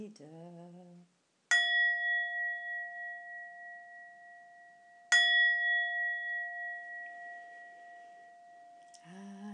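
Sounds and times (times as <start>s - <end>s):
olympic bells ringing: 1.5s - 9.0s.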